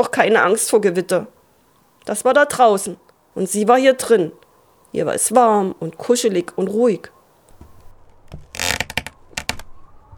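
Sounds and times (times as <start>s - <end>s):
speech: 0.0s - 1.4s, 2.0s - 7.2s
wood creaking outside the bedroom: 7.5s - 10.1s.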